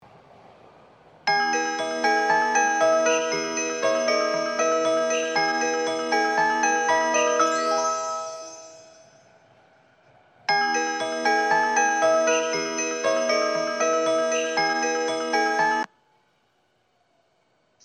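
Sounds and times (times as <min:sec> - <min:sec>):
melody: 0:01.3 - 0:09.2, 0:10.5 - 0:15.9.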